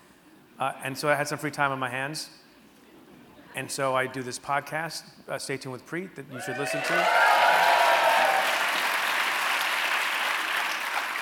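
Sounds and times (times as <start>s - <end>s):
speech: 0.6s - 2.4s, 3.6s - 7.7s
audience applause: 6.5s - 11.2s.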